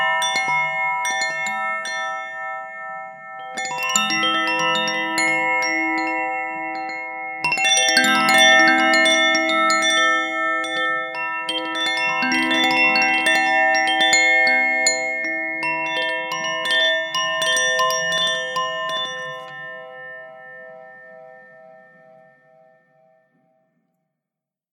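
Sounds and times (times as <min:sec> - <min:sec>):
wind chimes in autumn twilight: 0:00.0 - 0:23.6.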